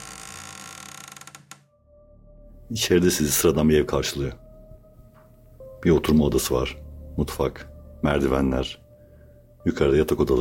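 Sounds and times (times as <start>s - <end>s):
house's front door creaking open: 0.0s - 1.8s
speech: 2.7s - 4.4s, 5.8s - 8.8s, 9.6s - 10.4s.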